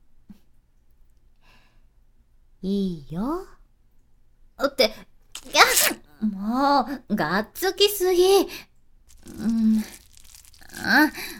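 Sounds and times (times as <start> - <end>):
speech: 2.6 - 3.6, 4.7 - 5.1, 5.8 - 8.7, 11.0 - 11.3
wet noisy sucking sounds: 5.4 - 6.0.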